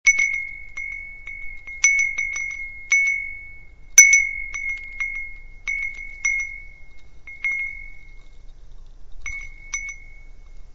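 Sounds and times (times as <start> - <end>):
wind chime: 0.1 - 10.7.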